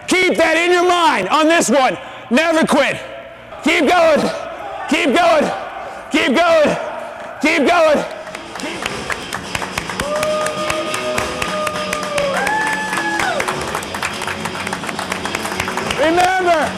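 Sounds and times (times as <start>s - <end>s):
speech: 0.3s - 8.1s, 16.0s - 16.7s
crowd clapping: 7.9s - 16.7s
whistle-like or cheering tones: 10.0s - 13.6s.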